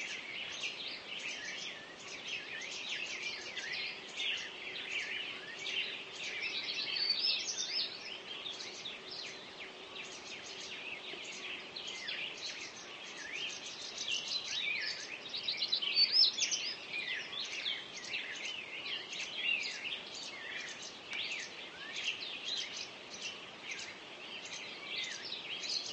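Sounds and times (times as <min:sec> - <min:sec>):
birds singing at dawn: 0:00.0 - 0:25.9.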